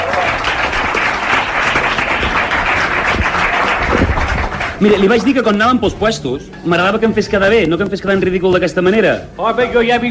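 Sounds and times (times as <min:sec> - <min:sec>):
audience applause: 0:00.0 - 0:05.4
speech: 0:04.8 - 0:10.1.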